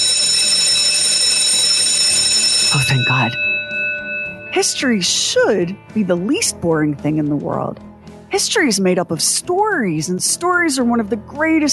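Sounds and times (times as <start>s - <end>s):
school bell ringing: 0.0s - 6.0s
speech: 2.7s - 3.4s, 4.5s - 11.7s.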